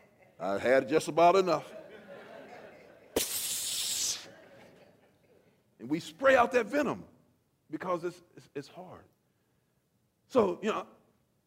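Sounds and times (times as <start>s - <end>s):
speech: 0.4s - 1.8s, 5.8s - 7.1s, 7.7s - 9.2s, 10.3s - 11.0s
laughter: 1.6s - 3.2s, 4.1s - 5.6s
person imitating snake hiss: 3.2s - 4.3s.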